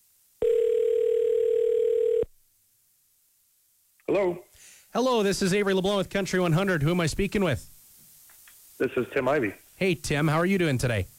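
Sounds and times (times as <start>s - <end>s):
telephone dial tone placing a call: 0.4s - 2.3s
speech: 4.2s - 7.7s, 8.8s - 11.1s.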